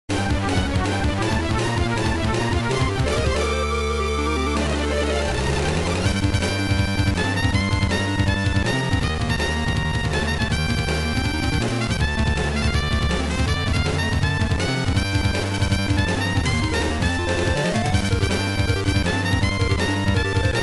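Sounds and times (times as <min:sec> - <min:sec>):
battle music: 0:00.1 - 0:20.6.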